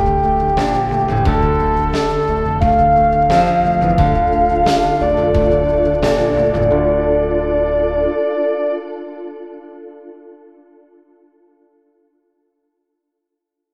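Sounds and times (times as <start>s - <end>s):
saxophone playing in Dunkerque: 0.0s - 9.8s.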